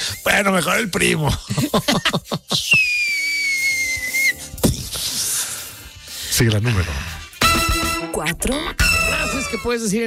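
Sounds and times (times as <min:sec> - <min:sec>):
speech: 0:00.2 - 0:03.5, 0:06.4 - 0:07.2, 0:08.2 - 0:10.0
laughter: 0:01.5 - 0:02.8
shrill whistle blown as comedic effect: 0:02.6 - 0:04.5.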